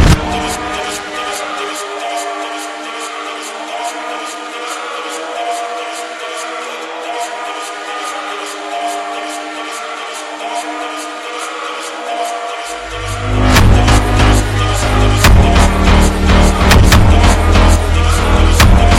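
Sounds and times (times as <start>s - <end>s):
sped up funk music: 13.3s - 18.9s.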